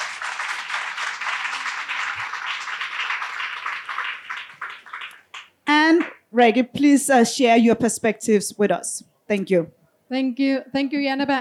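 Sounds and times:
audience applause welcoming three panelists: 0.0 - 5.5
speech: 6.3 - 11.4.

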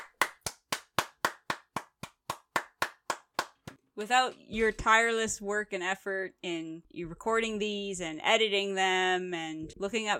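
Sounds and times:
hands clapping: 0.0 - 3.8
speech: 4.0 - 10.1.

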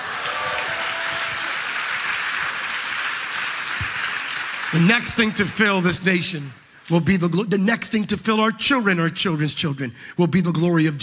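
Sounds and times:
audience applause: 0.0 - 6.2
speech: 4.7 - 11.0.

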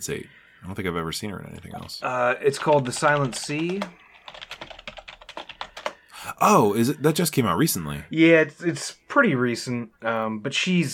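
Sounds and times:
speech: 0.0 - 4.4, 6.4 - 10.9
typing on a computer keyboard: 1.5 - 6.0.

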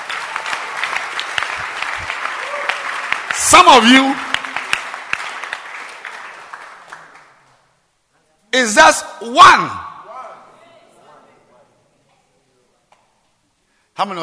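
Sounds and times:
audience clapping: 0.0 - 7.7
speech: 3.5 - 4.2, 8.6 - 9.8, 14.0 - 14.2.

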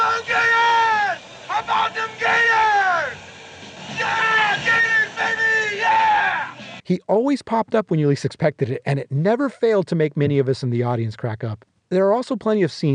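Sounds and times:
man screaming woo in a film clip: 0.0 - 3.2, 3.9 - 6.6
speech: 6.9 - 12.9.

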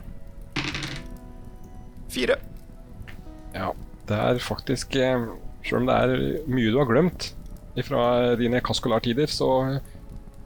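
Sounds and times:
two dice being rolled: 0.6 - 1.2
speech: 2.1 - 2.6, 3.6 - 9.9.

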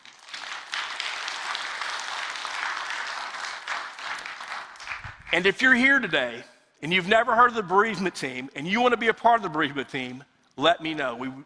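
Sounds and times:
audience applause: 0.0 - 5.4
speech: 5.3 - 11.4.

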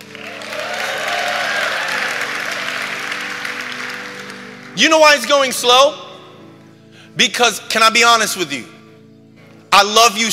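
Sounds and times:
church congregation applause and cheering: 0.0 - 5.6
speech: 4.8 - 6.0, 7.2 - 8.8, 9.7 - 10.3.

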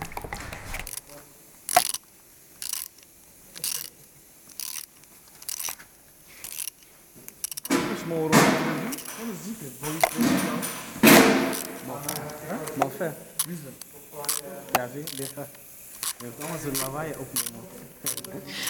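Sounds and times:
ratchet-like clicks in a car bodywork workshop: 0.0 - 18.6
metallic clanks in a car bodywork workshop: 7.6 - 18.6
speech: 8.1 - 8.5, 9.5 - 10.8, 12.8 - 18.6.

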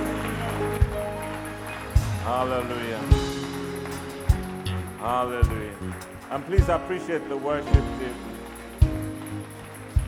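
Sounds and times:
audience clapping: 0.0 - 10.0
speech: 2.3 - 3.3, 5.0 - 8.3.

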